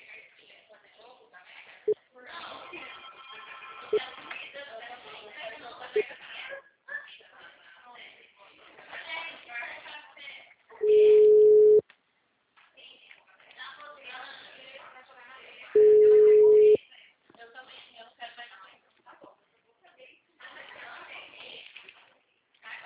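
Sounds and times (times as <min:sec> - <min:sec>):
people talking: 0:00.0 - 0:11.8, 0:12.8 - 0:22.8
telephone busy tone: 0:10.8 - 0:11.8, 0:15.8 - 0:16.8.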